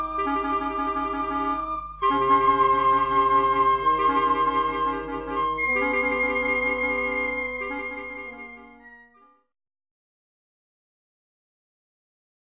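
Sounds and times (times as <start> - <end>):
wind quintet playing: 0.0 - 9.3.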